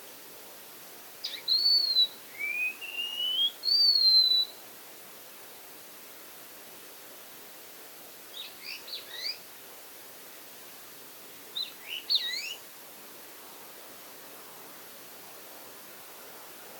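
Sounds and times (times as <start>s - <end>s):
Wallcreeper calls of thin high twittering whistles: 1.2s - 4.5s, 11.6s - 12.6s.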